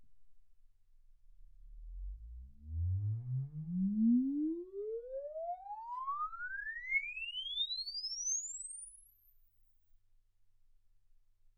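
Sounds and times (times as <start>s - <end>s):
exponential sine sweep from 10 Hz to 24 kHz: 1.9s - 9.4s.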